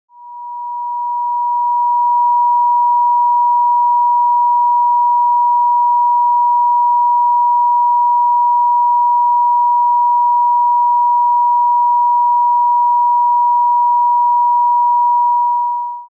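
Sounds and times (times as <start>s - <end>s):
963 Hz tone: 0.1s - 16.0s.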